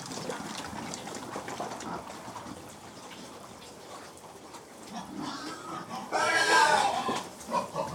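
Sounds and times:
group of pigs grunting and snuffling: 0:04.9 - 0:07.9.

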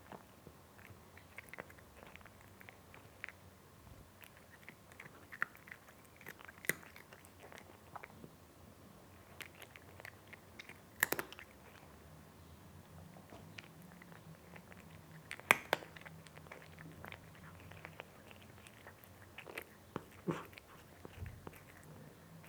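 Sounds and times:
cat eating crunchy food: 0:00.0 - 0:22.4.

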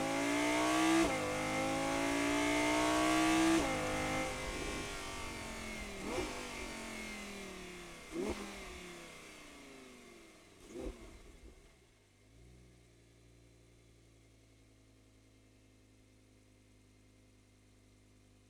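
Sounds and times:
Audi R8 engine onboard starting, driving fast, stopping and reversing: 0:00.0 - 0:11.5.

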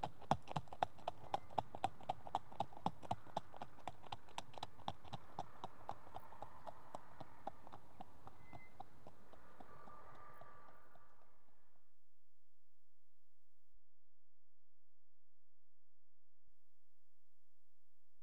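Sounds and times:
one horse trotting on tarmac: 0:00.0 - 0:11.1.

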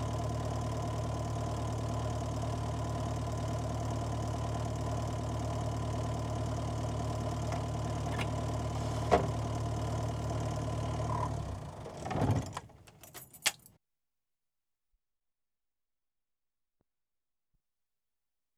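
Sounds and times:
Land Rover Safari diesel driving: 0:00.2 - 0:13.6.

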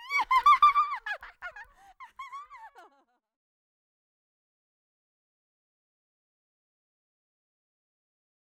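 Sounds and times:
cackling hags in horror style: 0:00.0 - 0:03.0.

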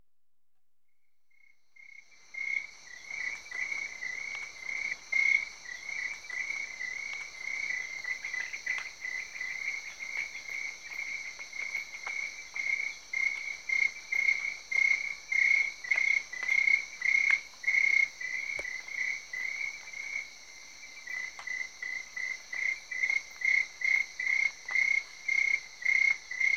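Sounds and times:
crickets chirping in Cameroon: 0:01.3 - 0:26.5.

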